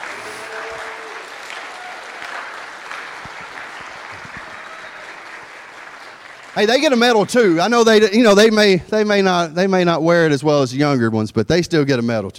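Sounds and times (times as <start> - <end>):
audience applause: 0.0 - 8.0
speech: 6.6 - 12.3.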